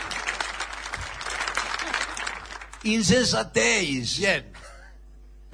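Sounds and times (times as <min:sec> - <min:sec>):
crowd clapping: 0:00.0 - 0:03.1
speech: 0:02.8 - 0:04.7.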